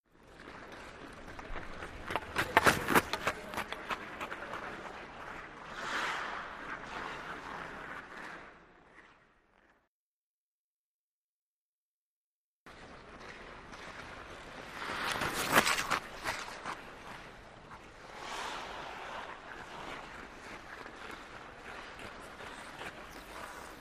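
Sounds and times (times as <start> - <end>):
hockey skater skating fast past: 0.2 - 9.9, 12.7 - 23.7.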